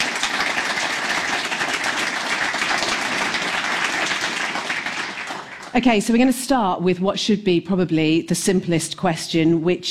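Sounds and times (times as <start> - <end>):
audience applauding to welcome debate candidates: 0.0 - 5.8
speech: 5.8 - 9.8.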